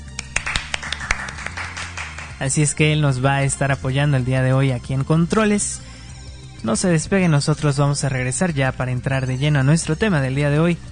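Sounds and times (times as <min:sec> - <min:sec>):
applause: 0:00.1 - 0:02.4
speech: 0:02.4 - 0:05.9, 0:06.6 - 0:10.9.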